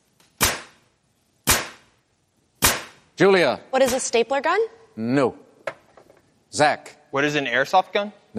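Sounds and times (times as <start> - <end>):
nail gun firing: 0.4 - 0.8, 1.4 - 1.9, 2.6 - 3.0
speech: 3.2 - 5.4, 6.5 - 8.3.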